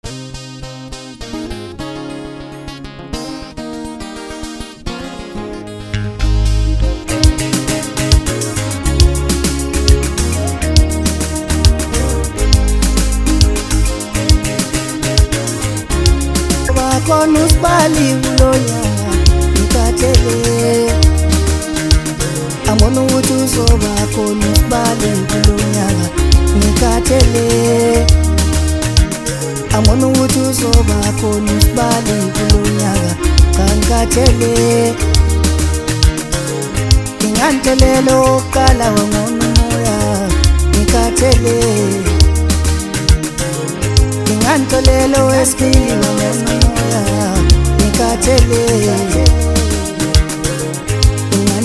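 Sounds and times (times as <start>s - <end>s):
maskandi song: 0.0s - 51.6s.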